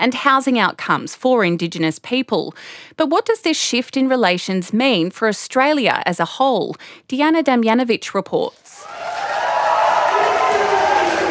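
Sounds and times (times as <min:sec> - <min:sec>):
speech: 0:00.0 - 0:09.0
crowd cheering in the Victorian parliament as the treaty bill passes: 0:08.8 - 0:11.2.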